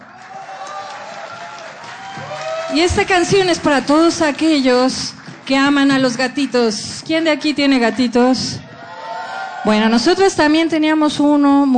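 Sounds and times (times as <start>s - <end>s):
audience applause: 0.0s - 6.8s
speech: 2.2s - 8.7s, 9.6s - 11.7s.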